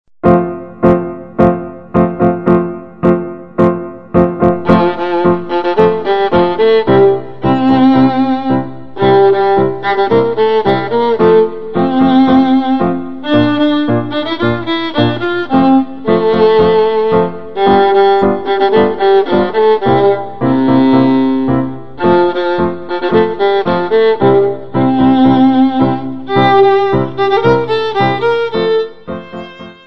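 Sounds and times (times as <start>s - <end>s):
tango music: 0.2s - 29.8s.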